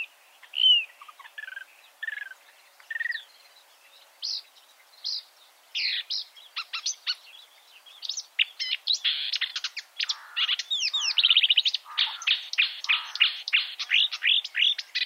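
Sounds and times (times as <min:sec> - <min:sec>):
marsh warbler song: 0:00.0 - 0:15.0.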